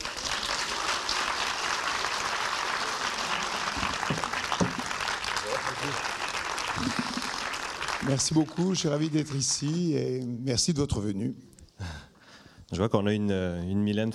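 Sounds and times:
audience applause welcoming a speaker: 0.0s - 10.2s
speech: 8.1s - 11.5s, 12.7s - 14.1s.

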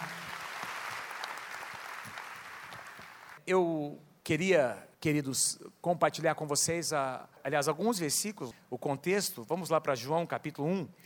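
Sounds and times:
audience applauding: 0.0s - 3.4s
speech: 3.5s - 11.0s.

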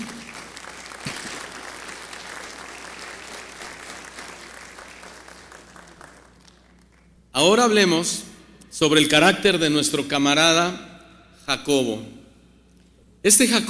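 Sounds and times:
audience applause: 0.0s - 7.1s
speech: 7.4s - 10.9s, 11.5s - 12.2s, 13.2s - 13.6s.

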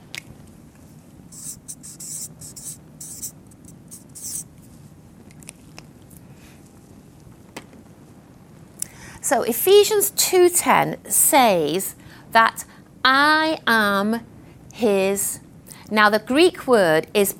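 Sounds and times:
pen scratching on paper writing a Bible verse: 1.4s - 4.5s
speech: 9.3s - 17.3s.

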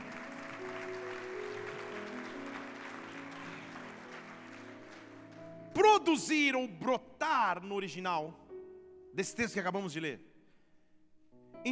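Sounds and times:
audience applauding: 0.0s - 5.8s
speech: 6.0s - 8.4s, 9.2s - 10.3s.

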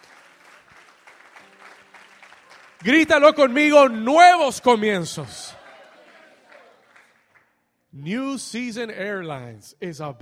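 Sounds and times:
audience clapping: 0.0s - 7.6s
speech: 2.8s - 5.4s, 8.0s - 10.1s.

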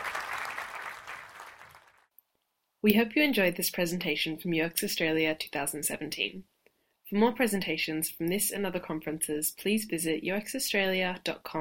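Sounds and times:
audience giving a quick clap: 0.0s - 2.1s
speech: 2.8s - 6.5s, 7.1s - 11.5s.

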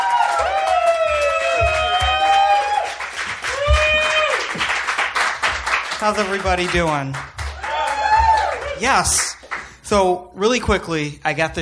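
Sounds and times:
cheers and whoops: 0.0s - 4.6s, 7.6s - 8.8s
crowd applauding: 0.0s - 9.8s
speech: 6.0s - 7.4s, 8.8s - 11.5s.

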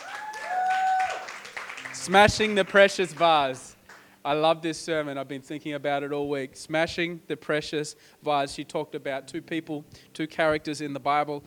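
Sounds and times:
room full of people clapping: 0.0s - 4.1s
speech: 2.0s - 11.4s.

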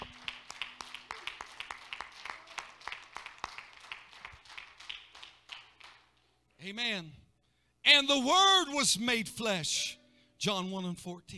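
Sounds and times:
audience clapping hands: 0.0s - 6.3s
speech: 6.6s - 7.2s, 7.9s - 11.3s.

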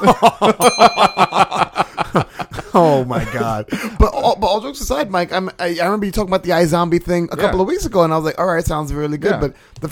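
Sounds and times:
speech: 0.0s - 2.3s, 3.0s - 9.9s
laughter: 0.0s - 4.4s
bell ding: 0.6s - 1.7s.

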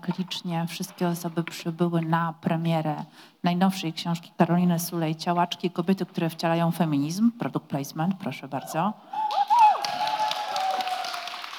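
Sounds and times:
speech: 0.0s - 9.6s
audience clapping: 9.2s - 11.5s.

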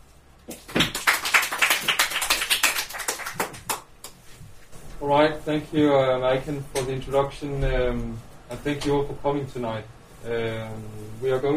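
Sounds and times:
small audience applause: 0.7s - 3.9s
speech: 5.1s - 11.5s.

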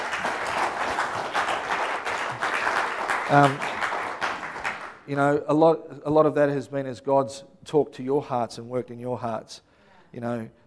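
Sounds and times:
audience applause: 0.0s - 5.0s
speech: 3.3s - 3.7s, 5.1s - 10.6s.

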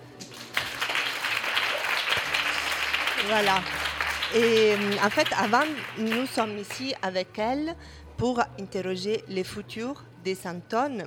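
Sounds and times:
audience applause: 0.2s - 7.1s
speech: 3.2s - 11.0s.

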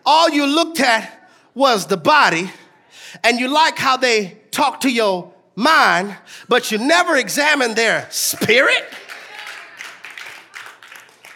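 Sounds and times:
speech: 0.1s - 9.0s
audience clapping: 8.2s - 11.3s.

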